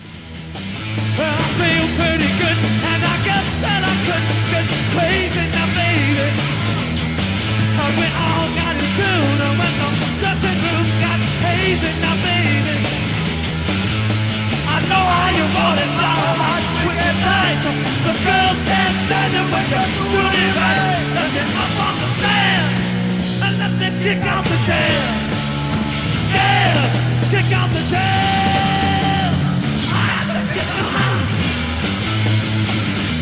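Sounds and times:
rock song: 0:00.0 - 0:33.1.

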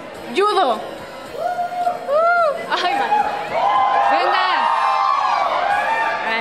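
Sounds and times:
speech: 0:00.4 - 0:00.9
crowd shouting a school cheer: 0:01.3 - 0:06.3.

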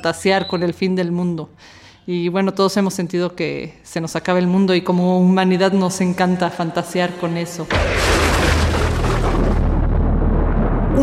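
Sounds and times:
speech: 0:00.0 - 0:08.5
thunder from a lightning strike: 0:07.7 - 0:11.0.

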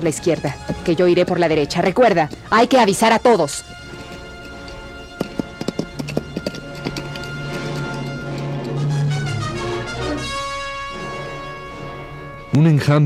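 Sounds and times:
speech: 0:00.0 - 0:03.8, 0:12.6 - 0:13.0
riders' horses' hooves clip-clopping arriving at a crossroads: 0:00.0 - 0:10.7
sustained musical tones: 0:00.0 - 0:13.0.

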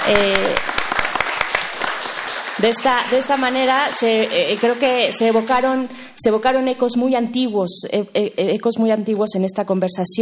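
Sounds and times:
speech: 0:00.0 - 0:00.7, 0:02.6 - 0:10.2
audience applause: 0:00.0 - 0:05.8.

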